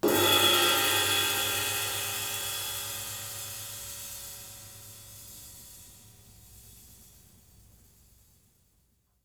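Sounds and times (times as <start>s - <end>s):
sizzle ride cymbal: 0.0s - 8.5s.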